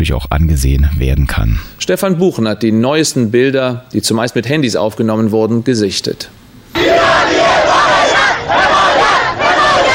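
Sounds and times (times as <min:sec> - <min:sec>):
speech: 0:00.0 - 0:07.2
crowd of protesters shouting at night: 0:06.8 - 0:09.9.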